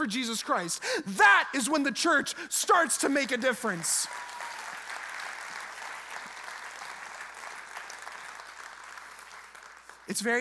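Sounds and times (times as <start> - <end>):
speech: 0.0 - 4.3, 10.1 - 10.3
audience clapping: 3.0 - 10.3.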